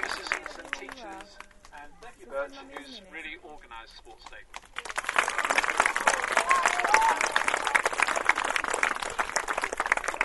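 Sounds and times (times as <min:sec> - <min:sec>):
audience applause: 0:00.0 - 0:01.3, 0:04.5 - 0:10.2
speech: 0:02.0 - 0:04.8.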